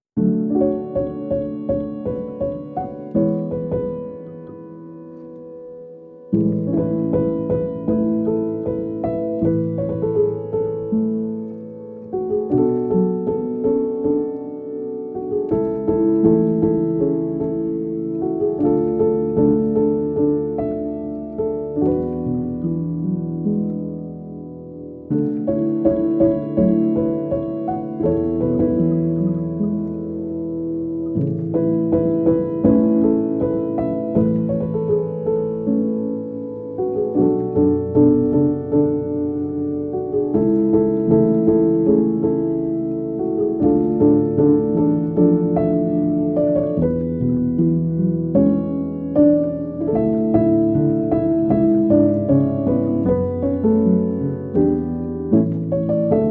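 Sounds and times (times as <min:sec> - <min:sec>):
sleep piano music: 0:00.0 - 0:56.2.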